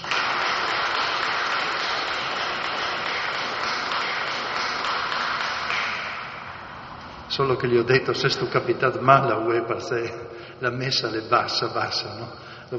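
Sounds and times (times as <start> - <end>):
audience applause: 0.0 - 6.3
speech: 7.4 - 12.7.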